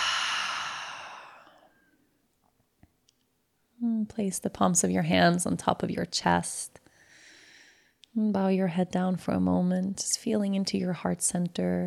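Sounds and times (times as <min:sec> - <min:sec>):
deep breath exhaled through the open mouth: 0:00.0 - 0:01.7
speech: 0:04.0 - 0:06.8, 0:08.2 - 0:11.8.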